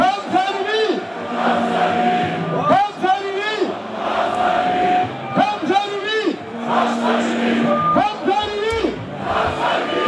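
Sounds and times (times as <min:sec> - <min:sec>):
large crowd of celebrating football fans chanting and cheering in a street: 0:00.0 - 0:10.0.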